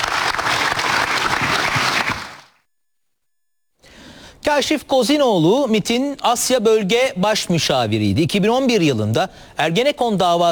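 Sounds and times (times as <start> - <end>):
applause: 0.0 - 2.5
speech: 4.5 - 10.4.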